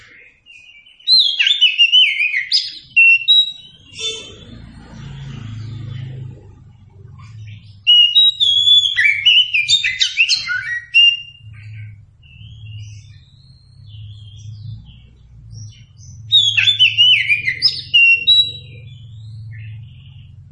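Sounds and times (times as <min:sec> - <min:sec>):
Oriental magpie-robin song: 0:00.0 - 0:20.5
steady low hum: 0:02.8 - 0:20.5.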